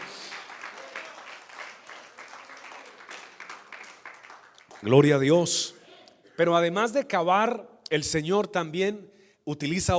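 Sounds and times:
audience applause: 0.0s - 5.1s
speech: 4.8s - 5.8s, 6.4s - 9.9s.

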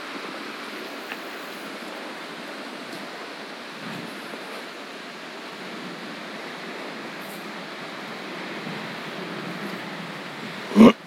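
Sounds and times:
Lake Michigan waves washing on beach: 0.0s - 11.0s.

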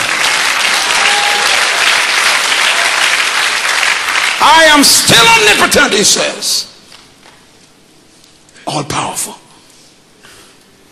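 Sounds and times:
large crowd applauding: 0.0s - 5.6s
crowd cheering and shouting: 0.8s - 3.1s
speech: 4.4s - 6.7s, 8.7s - 9.4s.

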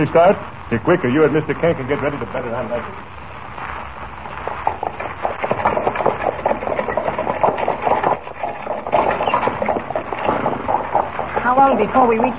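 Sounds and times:
speech: 0.0s - 3.2s, 11.5s - 12.3s
horse-drawn buckboard wagon ride: 4.4s - 12.3s.

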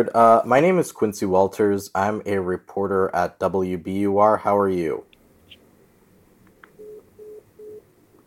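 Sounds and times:
speech: 0.0s - 5.1s
phone line tone after hang-up: 6.8s - 7.8s.

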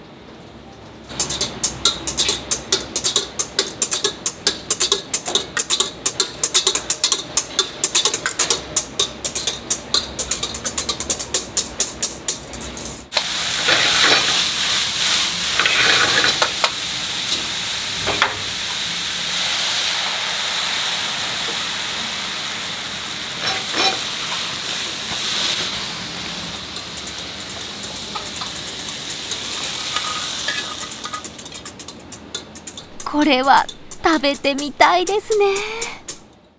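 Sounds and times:
omelette rice frying and sizzling in a pan: 1.0s - 36.3s
whisking taps: 1.1s - 12.9s, 26.8s - 36.5s
speech: 33.2s - 35.8s.

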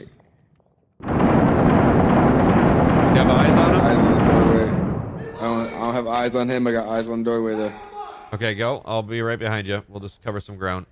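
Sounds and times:
grenade explosion in the video game Six Days in Fallujah: 1.0s - 6.5s
speech: 6.2s - 10.8s.

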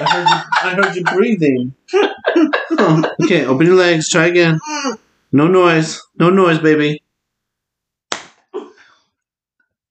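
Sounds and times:
laughter: 0.0s - 3.6s
speech: 0.2s - 7.0s
hand slapping a leg: 8.1s - 8.5s.

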